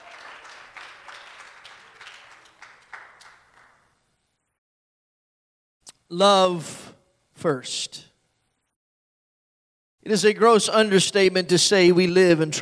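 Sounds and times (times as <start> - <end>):
audience clapping: 0.0 - 4.0
speech: 6.1 - 6.8, 7.4 - 8.1, 10.0 - 12.6.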